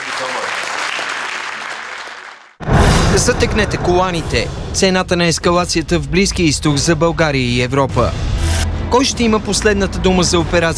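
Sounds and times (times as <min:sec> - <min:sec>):
audience applause: 0:00.0 - 0:02.6
speech: 0:03.2 - 0:08.3, 0:08.9 - 0:10.7.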